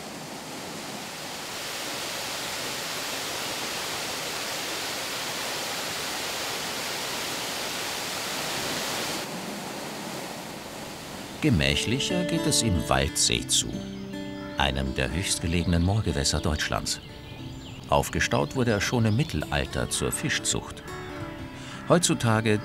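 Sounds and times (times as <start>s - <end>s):
waterfall rushing: 0.0s - 12.6s
speech: 11.4s - 17.2s, 17.9s - 21.0s, 21.9s - 22.6s.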